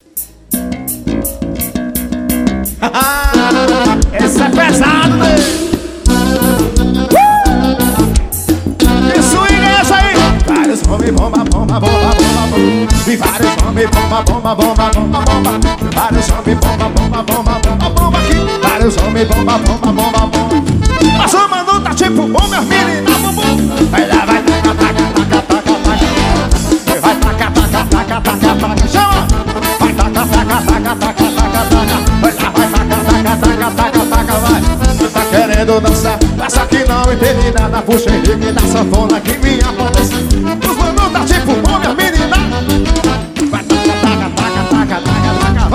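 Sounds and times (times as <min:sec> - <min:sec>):
live xote music: 0:00.0 - 0:45.7.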